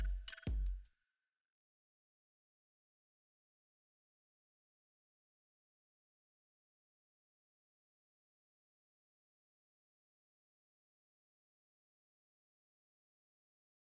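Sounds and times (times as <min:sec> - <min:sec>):
percussion: 0:00.0 - 0:00.9.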